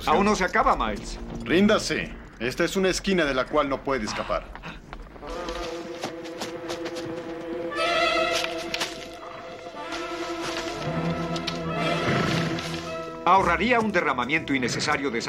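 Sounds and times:
speech: 0.0s - 4.7s, 13.3s - 15.2s
hooves scuffling: 0.0s - 15.2s
horses neighing: 3.5s - 13.2s.

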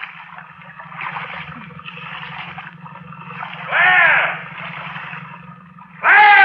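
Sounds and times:
paddle swishing through water of a small boat: 0.0s - 6.4s
steady low hum: 0.0s - 6.4s
loud vocal bursts: 1.2s - 5.1s.

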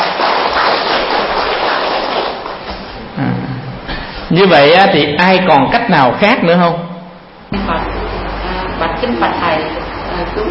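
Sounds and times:
audience applause: 0.0s - 2.6s
speech: 4.4s - 6.8s, 9.0s - 10.4s.

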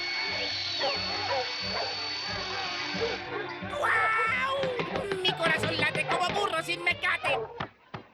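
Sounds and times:
thin high whine: 0.0s - 3.4s
dogs barking excitedly while chasing a rabbit: 0.3s - 7.8s
laughter: 3.1s - 7.6s.

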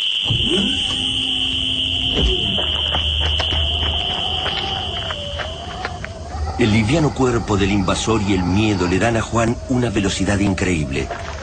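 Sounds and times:
shrill steady alarm tone ringing: 0.0s - 7.0s
speech: 0.2s - 1.2s, 6.6s - 11.4s.

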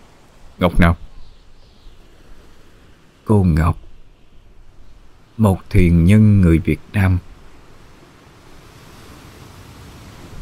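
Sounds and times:
sea waves crashing on shore: 0.0s - 10.3s
speech: 0.6s - 1.0s, 3.3s - 3.8s, 5.4s - 7.3s.

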